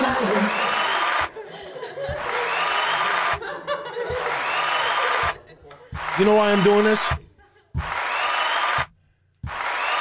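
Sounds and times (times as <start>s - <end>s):
piped-in canned crowd applause sound effect: 0.0s - 7.2s, 7.8s - 9.9s
laughter: 0.0s - 7.9s
speech: 6.2s - 7.2s.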